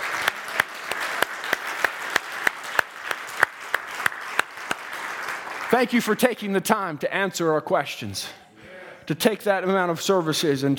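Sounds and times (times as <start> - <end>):
audience applause: 0.0 - 6.2
speech: 5.7 - 8.4, 9.1 - 10.7.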